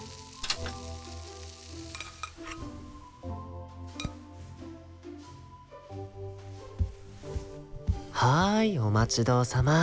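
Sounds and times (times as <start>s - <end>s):
bacon and eggs frying in a pan: 0.0s - 3.2s
utensils clinking: 0.4s - 0.9s, 1.8s - 3.1s, 4.0s - 4.2s
speech: 8.2s - 9.8s.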